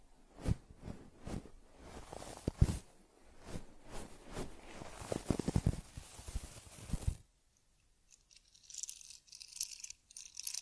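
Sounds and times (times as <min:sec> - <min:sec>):
teddy fur combing: 0:00.0 - 0:07.2
teddy head massage: 0:00.0 - 0:07.2.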